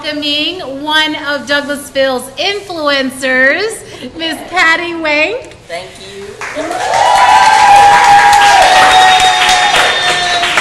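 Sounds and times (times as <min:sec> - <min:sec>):
speech: 0:00.0 - 0:08.0
audience applause welcoming a guest at an art bistro in downtown Douglasville: 0:06.4 - 0:10.5
long high whoop: 0:06.6 - 0:10.5.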